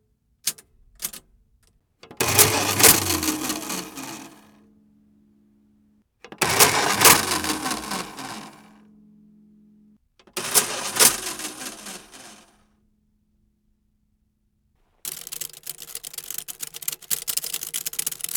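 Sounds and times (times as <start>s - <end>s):
check printer printing: 2.1s - 4.4s, 6.3s - 8.7s, 10.2s - 12.4s, 15.1s - 18.3s.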